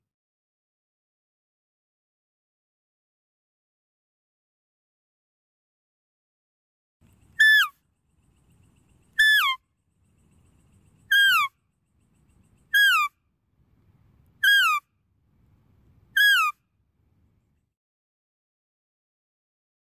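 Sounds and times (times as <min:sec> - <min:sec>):
deer whistled calls: 0:07.4 - 0:07.8, 0:09.1 - 0:09.6, 0:11.0 - 0:11.5, 0:12.6 - 0:13.1, 0:14.4 - 0:14.8, 0:16.2 - 0:16.6.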